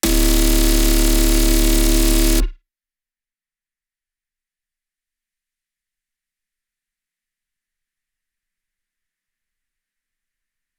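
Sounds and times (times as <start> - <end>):
sustained frozen bass tone: 0.0 - 2.5.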